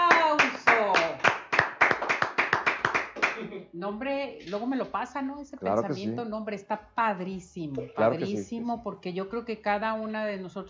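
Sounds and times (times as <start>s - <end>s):
audience applause: 0.2s - 3.4s
speech: 3.7s - 10.6s.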